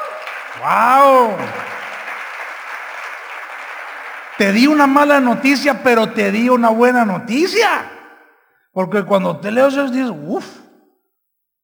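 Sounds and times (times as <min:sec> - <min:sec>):
audience applause: 0:00.0 - 0:05.6
speech: 0:00.6 - 0:01.8, 0:04.4 - 0:08.0, 0:08.8 - 0:10.6.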